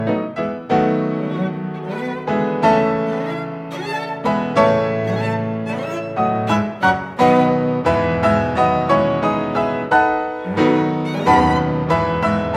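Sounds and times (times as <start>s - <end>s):
piano trio playing a variation in A minor: 0.0s - 12.5s.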